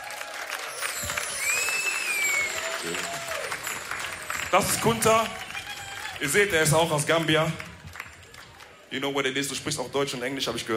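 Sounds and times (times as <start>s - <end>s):
crowd cheering: 0.0s - 9.3s
audience applauding: 0.0s - 9.6s
high whistle from audience: 0.8s - 4.2s
speech: 2.8s - 3.1s, 4.5s - 5.4s, 6.2s - 7.7s, 8.9s - 10.7s.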